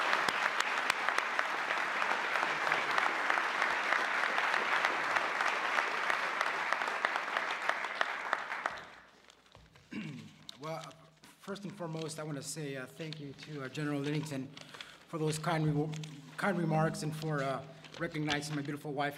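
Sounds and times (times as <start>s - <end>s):
applause: 0.0s - 9.2s
speech: 11.5s - 19.1s.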